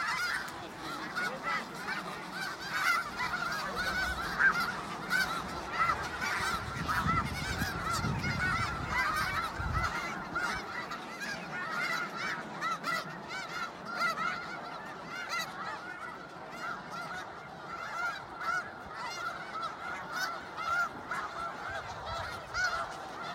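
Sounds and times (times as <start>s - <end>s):
Snow goose flock honking: 0.0s - 23.3s.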